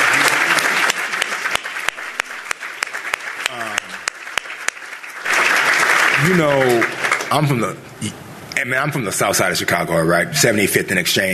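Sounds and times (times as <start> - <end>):
audience applause for panelists: 0.0 - 7.7
speech: 6.3 - 11.3.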